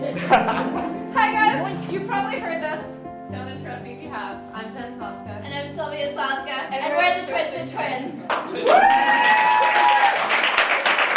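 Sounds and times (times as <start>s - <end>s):
laughter: 0.0s - 1.0s
speech: 0.2s - 0.7s, 1.6s - 9.5s
crowd audience applause: 8.3s - 11.1s.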